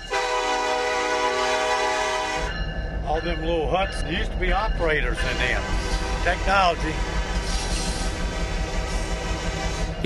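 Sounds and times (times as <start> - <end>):
train horn blast pulling out: 0.0 - 2.5, 5.1 - 10.0
speech: 3.2 - 7.2.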